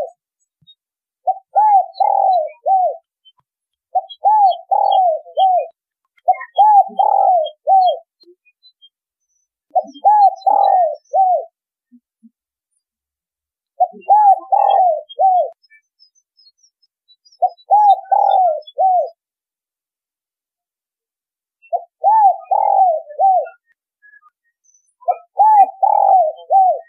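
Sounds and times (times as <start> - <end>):
spotted dove cooing: 1.2 - 3.0, 3.9 - 8.1, 9.7 - 11.5, 13.8 - 15.6, 17.4 - 19.2, 21.7 - 23.6, 25.1 - 26.8.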